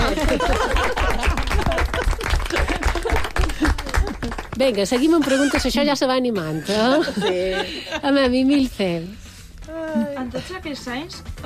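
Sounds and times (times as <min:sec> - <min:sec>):
audience applause: 0:00.0 - 0:05.7
laughter: 0:00.0 - 0:08.7
speech: 0:04.6 - 0:09.2, 0:10.0 - 0:11.4.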